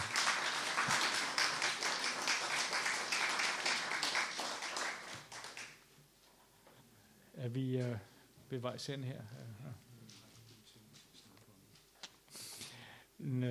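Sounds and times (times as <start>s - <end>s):
audience clapping: 0.0s - 5.9s
speech: 7.4s - 9.9s, 13.2s - 13.4s.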